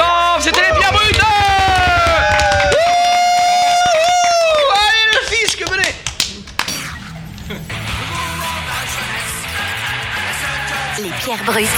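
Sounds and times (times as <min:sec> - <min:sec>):
crowd cheering and making noise: 0:00.0 - 0:06.7, 0:07.7 - 0:11.7
scattered claps: 0:00.0 - 0:07.5
speech: 0:11.5 - 0:11.7.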